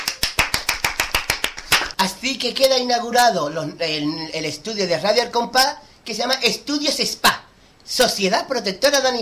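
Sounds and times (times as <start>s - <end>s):
applause: 0.0s - 2.0s
speech: 2.0s - 9.2s.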